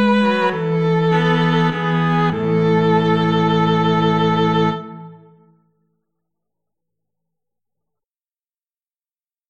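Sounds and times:
violin and cello duet: 0.0 - 5.4.

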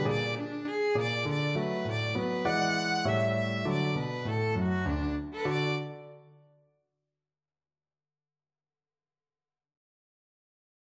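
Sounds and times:
ragtime on violin: 0.0 - 6.1.

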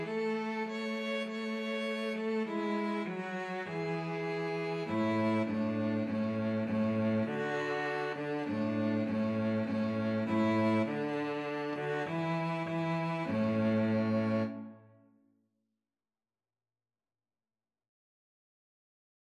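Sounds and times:
cello: 0.0 - 14.9
two violins: 0.0 - 14.9.

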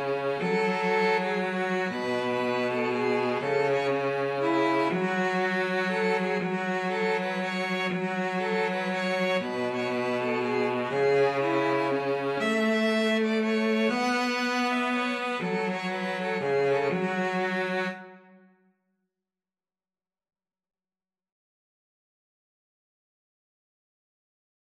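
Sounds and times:
violin and cello duet: 0.0 - 18.3.

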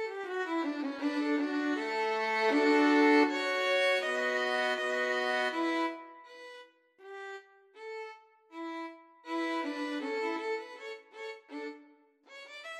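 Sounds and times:
violin trio playing: 0.0 - 6.4, 8.6 - 11.7.

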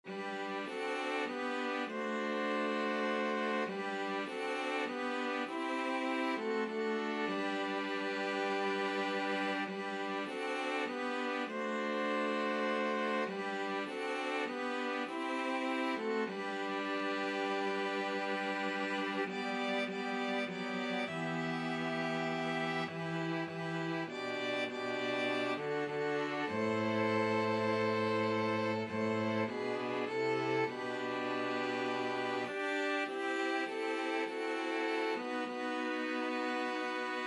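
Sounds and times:
string quartet playing a hymn: 0.0 - 37.2.

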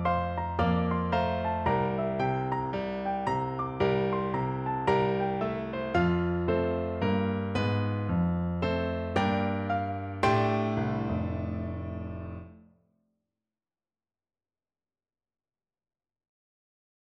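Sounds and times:
piano duet: 0.0 - 12.6.

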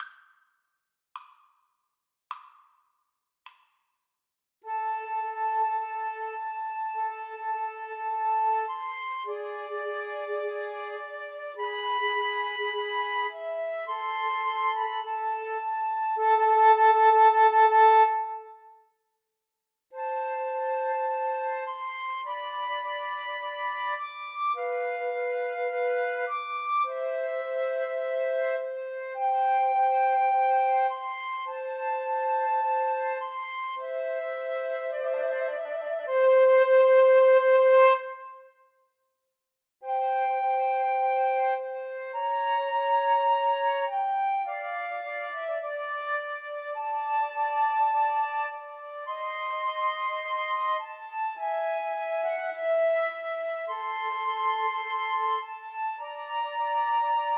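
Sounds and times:
flute trio playing: 4.7 - 18.7, 20.0 - 38.6, 39.8 - 57.3.

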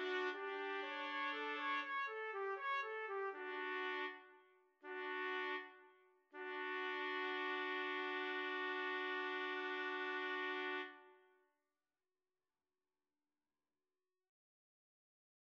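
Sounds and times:
trumpet trio: 0.0 - 4.2, 4.8 - 5.7, 6.4 - 11.0.

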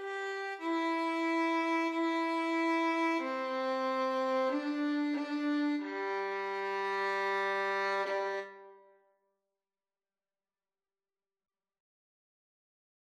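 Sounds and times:
violin duet: 0.0 - 8.8.

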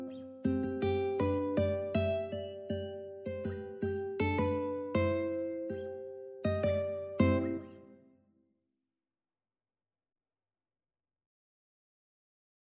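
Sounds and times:
ukulele: 0.0 - 5.8, 6.5 - 8.0.

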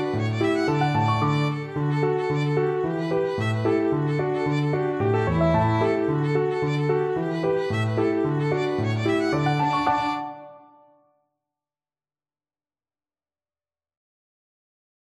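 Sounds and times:
violin playing a hornpipe: 0.0 - 10.6.

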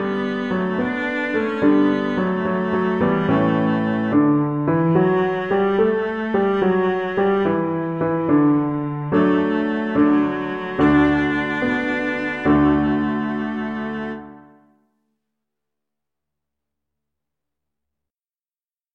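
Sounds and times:
violoncello: 0.0 - 14.7.

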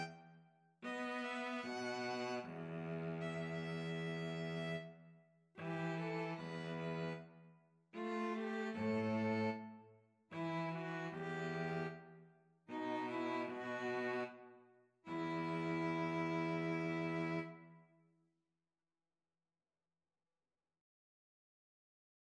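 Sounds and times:
violin and cello duet: 0.8 - 4.9, 5.6 - 7.3, 8.0 - 12.0, 12.7 - 14.4, 15.1 - 17.6.

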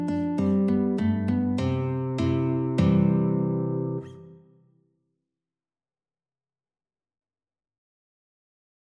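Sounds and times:
guitar duet: 0.0 - 4.6.

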